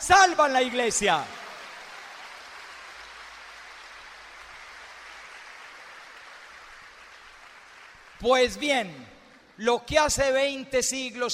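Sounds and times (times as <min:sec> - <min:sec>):
speech: 0:00.0 - 0:01.4, 0:08.2 - 0:11.3
audience applause: 0:00.8 - 0:08.2.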